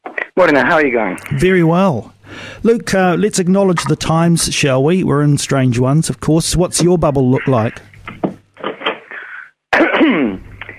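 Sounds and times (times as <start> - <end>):
speech: 0.4 - 7.9
cough: 9.7 - 10.7.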